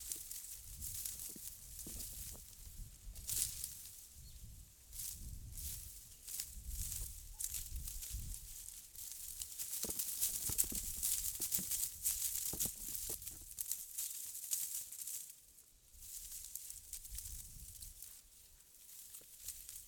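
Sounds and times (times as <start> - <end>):
bush rustling: 0.0 - 15.3, 15.9 - 19.8.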